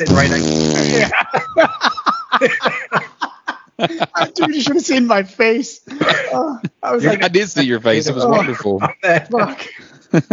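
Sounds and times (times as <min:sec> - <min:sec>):
fart noise from a phone: 0:00.0 - 0:01.1
speech: 0:00.0 - 0:02.8, 0:03.9 - 0:10.3
laughter: 0:00.0 - 0:04.9, 0:05.9 - 0:10.3.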